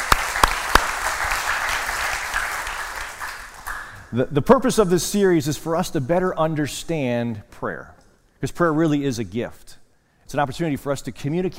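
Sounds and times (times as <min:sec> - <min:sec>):
audience applause: 0:00.0 - 0:04.0
speech: 0:04.1 - 0:11.5.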